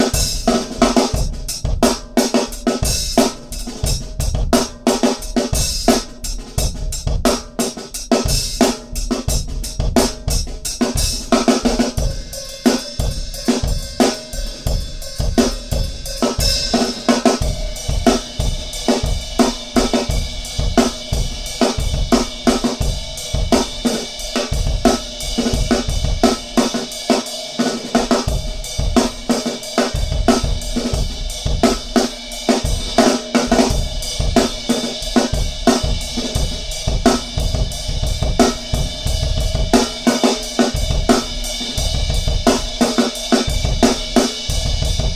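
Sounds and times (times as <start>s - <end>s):
drums played in a subway for tips: 0.0s - 45.1s.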